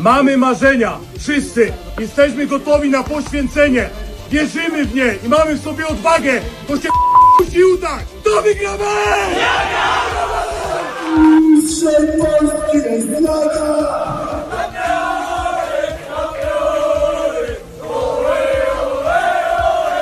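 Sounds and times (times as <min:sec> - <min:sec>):
speech: 0:00.0 - 0:10.4, 0:11.1 - 0:15.1
football team chanting campeones in a locker room: 0:08.9 - 0:20.0.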